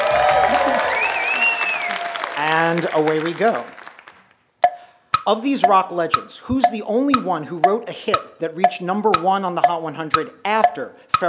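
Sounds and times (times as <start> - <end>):
game show studio audience applause and cheering: 0.0 - 4.2
speech: 2.7 - 3.8, 5.3 - 11.2.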